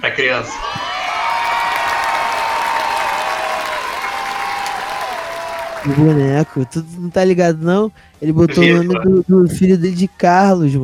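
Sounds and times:
speech: 0.0 - 0.8, 5.8 - 10.8
crowd applauding: 0.6 - 7.0.

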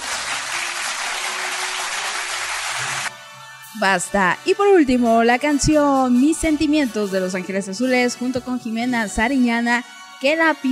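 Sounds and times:
applause: 0.0 - 3.1
speech: 3.8 - 10.7.

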